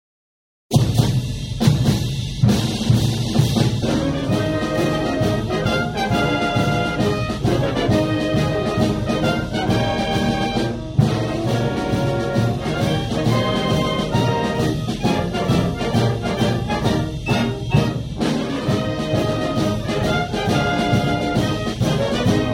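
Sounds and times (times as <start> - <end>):
drumroll: 0.7 - 22.5.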